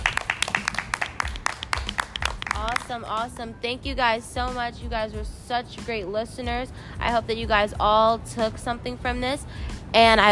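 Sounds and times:
audience applause: 0.0 - 2.8
speech: 2.9 - 10.2.

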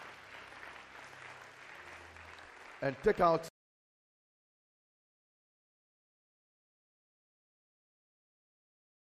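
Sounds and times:
audience clapping in praise: 0.0 - 3.5
speech: 2.8 - 3.5.

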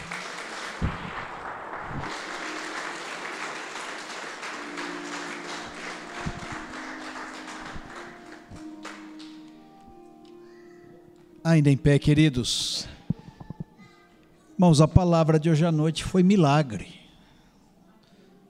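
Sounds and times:
audience clapping: 0.0 - 9.6
speech: 11.5 - 12.9, 14.6 - 17.0.

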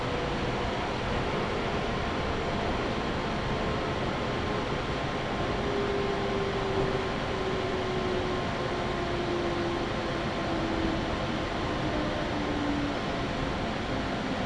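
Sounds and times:
Chuo West Line local train rumbling: 0.0 - 14.4.

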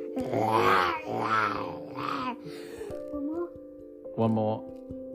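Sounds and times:
speech: 0.2 - 1.7, 4.2 - 4.7
voice imitating dinosaurs roaring: 0.2 - 2.4.

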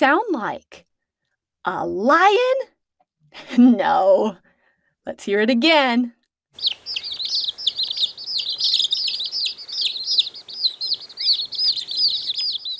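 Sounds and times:
speech: 0.0 - 0.9, 1.6 - 2.7, 3.3 - 6.8
baby chicks peeping: 6.6 - 12.7.

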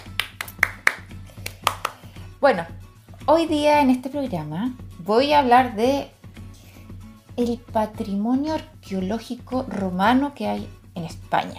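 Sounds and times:
applause: 0.0 - 2.0
speech: 2.4 - 6.2, 7.4 - 11.5.

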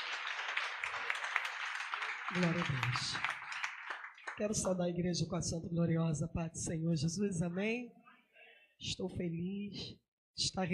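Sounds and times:
audience applause: 0.0 - 4.7
speech: 2.3 - 3.4, 4.4 - 8.0, 8.8 - 10.7.

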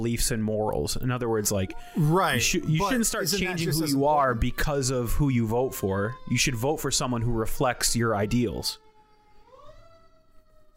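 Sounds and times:
speech: 0.0 - 8.8
fire engine sirens passing outside window: 1.4 - 9.0.

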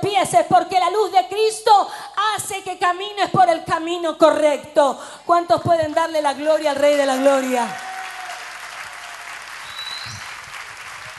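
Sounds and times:
speech: 0.0 - 7.9
audience applause: 7.1 - 11.1.

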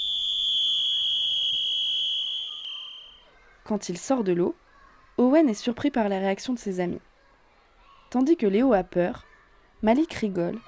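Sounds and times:
whistle blown at swimming pool: 0.0 - 3.3
speech: 3.7 - 4.6, 5.2 - 7.1, 8.1 - 10.6.

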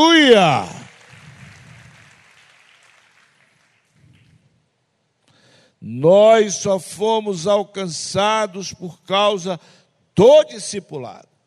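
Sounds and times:
speech: 0.0 - 0.8, 5.8 - 11.3
audience applause: 0.0 - 4.4.

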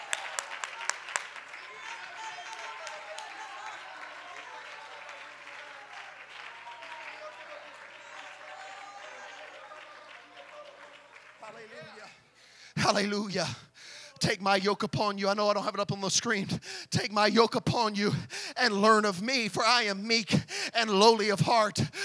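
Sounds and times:
audience clapping hands: 0.0 - 12.2
speech: 11.5 - 12.2, 12.9 - 22.0.

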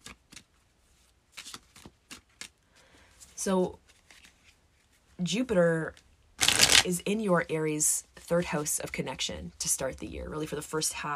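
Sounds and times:
tarot cards pulled and shuffled: 0.0 - 2.6, 3.8 - 5.0, 6.4 - 6.9
speech: 3.4 - 3.8, 5.2 - 6.0, 6.8 - 11.1.

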